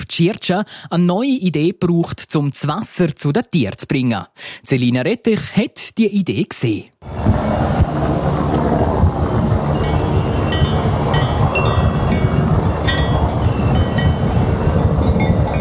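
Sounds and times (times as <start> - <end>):
speech: 0.0 - 8.2
helicopter approaching on mountain pasture: 7.0 - 15.5.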